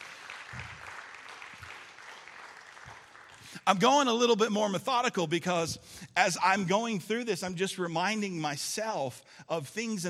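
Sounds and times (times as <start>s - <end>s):
round of applause: 0.0s - 3.9s
speech: 3.6s - 10.0s.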